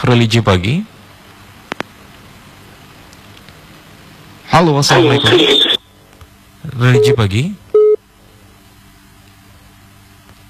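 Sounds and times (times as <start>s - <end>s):
speech: 0.0s - 0.9s, 4.6s - 5.8s, 6.8s - 7.6s
disconnected phone call electronic beep: 5.0s - 5.8s, 7.0s - 7.2s.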